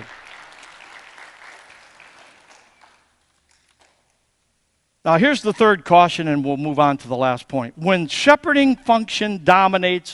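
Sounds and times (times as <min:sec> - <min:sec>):
audience hand clapping: 0:00.0 - 0:04.2
speech: 0:05.0 - 0:10.1.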